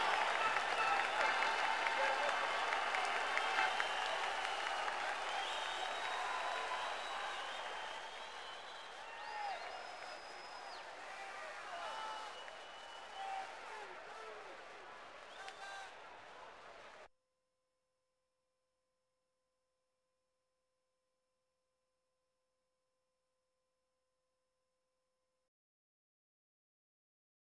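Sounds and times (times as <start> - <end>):
sports crowd: 0.0 - 17.1.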